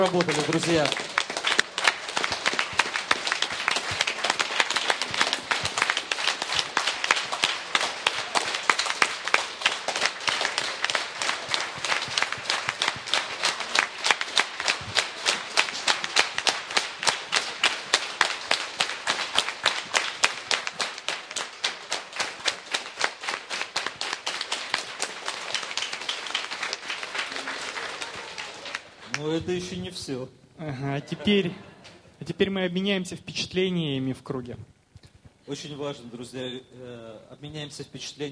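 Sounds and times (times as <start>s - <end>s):
speech: 0.0s - 1.1s, 29.7s - 31.7s, 32.3s - 34.7s, 35.5s - 38.3s
group of participants in a circle session clapping: 0.0s - 29.7s.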